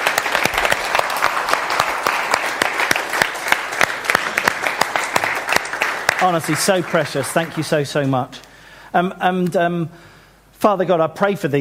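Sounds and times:
audience applause: 0:00.0 - 0:08.1
speech: 0:06.2 - 0:11.5.

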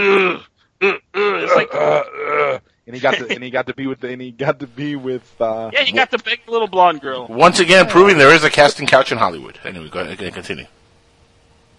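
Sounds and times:
speech: 0:00.0 - 0:01.0, 0:02.9 - 0:10.8
man groaning and grunting in imitation of an actor: 0:00.0 - 0:02.6.

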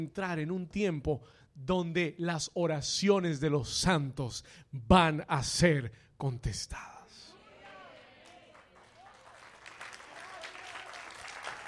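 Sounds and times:
speech: 0:00.0 - 0:07.0
audience applause: 0:08.1 - 0:11.6.

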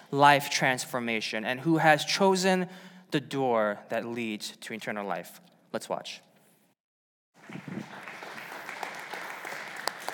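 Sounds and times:
speech: 0:00.1 - 0:06.3
audience applauding: 0:07.4 - 0:10.1.

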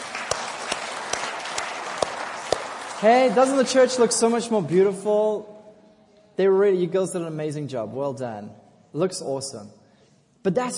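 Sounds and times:
audience clapping: 0:00.0 - 0:04.5
speech: 0:03.0 - 0:05.6, 0:06.4 - 0:09.8, 0:10.4 - 0:10.7.

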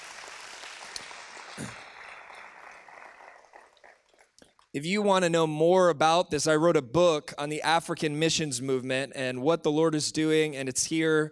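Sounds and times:
audience clapping: 0:00.0 - 0:04.7
speech: 0:04.8 - 0:11.3.

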